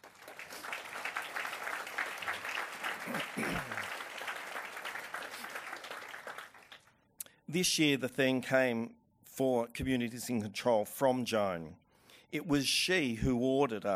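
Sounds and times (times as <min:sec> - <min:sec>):
audience at a social justice oration applauding to welcome a guest: 0:00.0 - 0:06.9
speech: 0:07.5 - 0:13.9.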